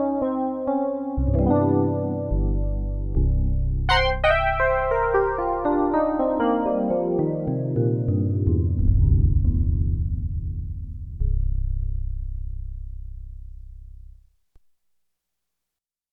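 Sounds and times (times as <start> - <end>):
Roland JX-8P synthesizer piano: 0.0 - 12.2.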